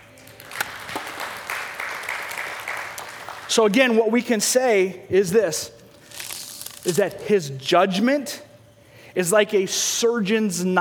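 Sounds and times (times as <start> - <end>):
audience applause: 0.0 - 3.5
speech: 3.5 - 5.8, 6.8 - 8.5, 9.2 - 10.8.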